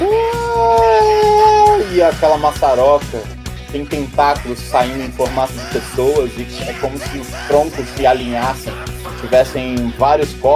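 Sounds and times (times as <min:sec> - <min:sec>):
people screaming and moaning: 0:00.0 - 0:02.4, 0:05.0 - 0:09.5
speech: 0:02.0 - 0:10.5.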